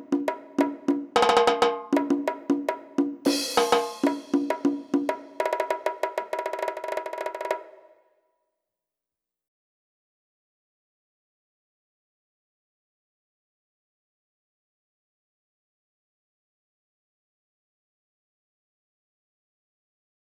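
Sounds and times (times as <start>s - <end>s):
percussion: 0.0s - 8.0s.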